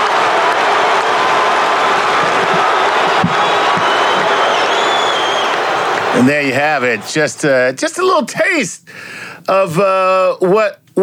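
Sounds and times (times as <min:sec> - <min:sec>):
people shouting: 0:00.0 - 0:07.4
basketball arena crowd cheering: 0:00.0 - 0:07.8
sharp whistles: 0:02.7 - 0:07.2
speech: 0:06.2 - 0:11.0.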